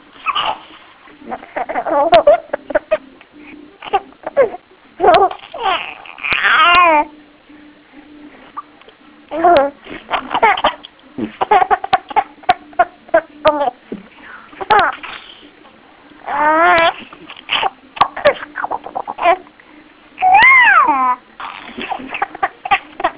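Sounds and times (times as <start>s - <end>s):
laughing: 0.2s - 3.2s, 3.8s - 7.1s, 9.3s - 13.8s, 16.3s - 19.4s, 20.2s - 23.1s.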